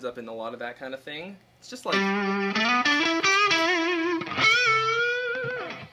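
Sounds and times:
speech: 0:00.0 - 0:03.7
distorted electric guitar playing a single-note melody: 0:01.9 - 0:05.9.

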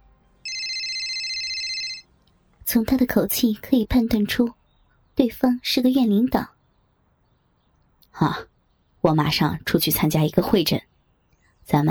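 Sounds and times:
mobile phone ringing: 0:00.4 - 0:02.1
speech: 0:02.7 - 0:04.6, 0:05.2 - 0:06.5, 0:08.2 - 0:10.9, 0:11.7 - 0:11.8.

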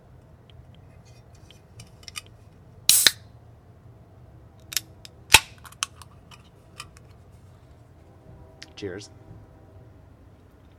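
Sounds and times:
IPA beer opening with fizz: 0:02.9 - 0:03.2
speech: 0:08.8 - 0:09.2.

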